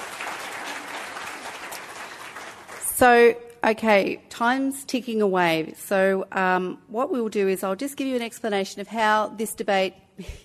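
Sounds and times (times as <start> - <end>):
round of applause for participants at a debate event: 0.0 - 3.0
speech: 3.0 - 10.4.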